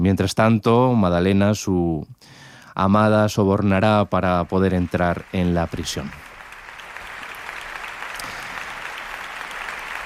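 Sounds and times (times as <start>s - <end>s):
speech: 0.1s - 6.3s
opera audience applause: 4.3s - 10.0s.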